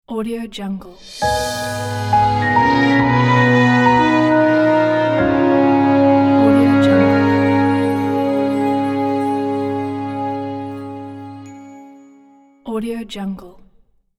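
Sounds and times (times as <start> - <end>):
fairy tale logo jingle: 1.0 - 12.6.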